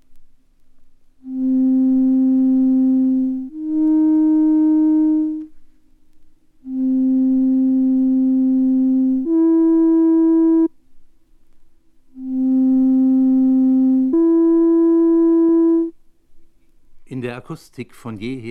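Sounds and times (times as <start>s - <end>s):
pure sine tones playing major-third intervals: 1.2s - 5.6s, 6.6s - 10.8s, 12.2s - 16.0s
speech: 17.4s - 18.4s.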